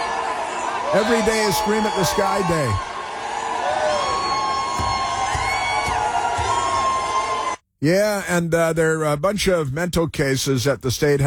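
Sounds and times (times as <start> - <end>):
protest crowd jeering and shouting: 0.0 - 7.6
speech: 0.9 - 2.9, 7.8 - 11.2.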